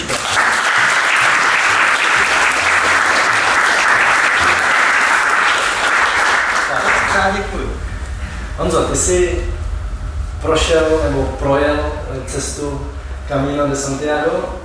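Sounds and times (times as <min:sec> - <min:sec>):
audience applause: 0:00.0 - 0:08.2
speech: 0:08.9 - 0:09.4, 0:10.4 - 0:14.6.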